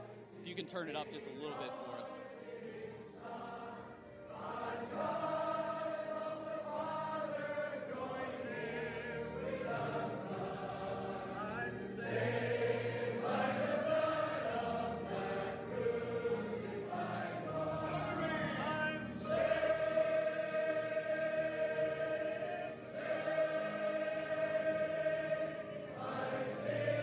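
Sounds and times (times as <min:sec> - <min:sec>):
church congregation singing together: 0:00.0 - 0:27.0
speech: 0:00.4 - 0:03.4, 0:04.8 - 0:05.4.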